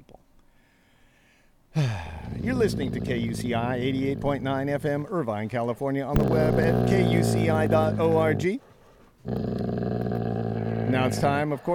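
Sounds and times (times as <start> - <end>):
dog growling: 1.8 - 5.1, 6.2 - 8.6, 9.2 - 11.7
speech: 2.4 - 9.7, 10.9 - 11.7.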